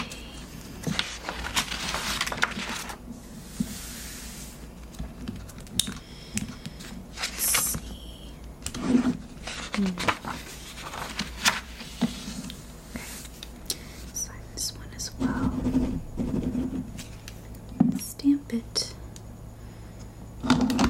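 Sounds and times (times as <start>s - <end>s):
faint low hum: 0.0s - 20.8s
paper rustling and crinkling: 0.8s - 3.0s, 9.0s - 12.4s.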